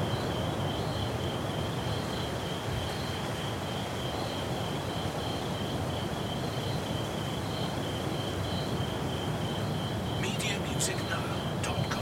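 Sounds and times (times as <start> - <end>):
rainforest ambience: 0.0 - 12.0
ocean waves: 9.4 - 12.0.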